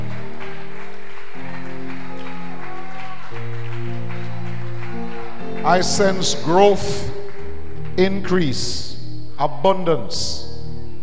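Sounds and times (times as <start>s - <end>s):
audience applause: 0.0s - 8.0s
speech: 5.6s - 7.2s, 8.0s - 10.4s.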